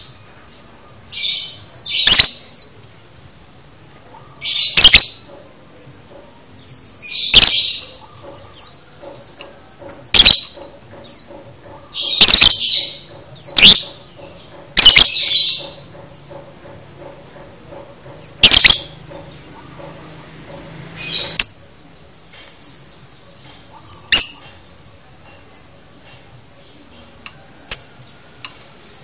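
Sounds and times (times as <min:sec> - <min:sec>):
lovebird chirping: 0:00.9 - 0:05.4, 0:06.6 - 0:08.8, 0:10.1 - 0:16.4, 0:18.2 - 0:20.2, 0:21.0 - 0:24.8, 0:27.7 - 0:29.0.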